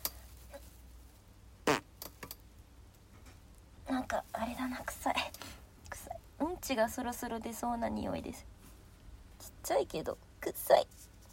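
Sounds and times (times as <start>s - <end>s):
faint small noises: 0.0s - 11.3s
fart: 1.6s - 1.9s
speech: 4.1s - 5.4s, 6.6s - 8.6s, 9.7s - 11.1s.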